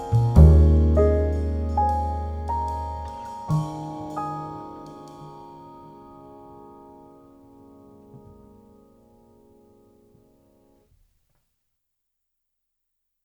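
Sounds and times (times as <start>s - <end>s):
jazz trio playing: 0.0s - 5.8s.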